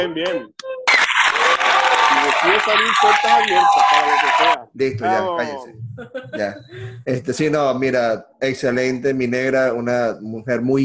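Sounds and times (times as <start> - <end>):
speech: 0.0 - 0.7, 1.4 - 10.8
audience applause: 0.9 - 4.6
laughter: 5.7 - 7.0.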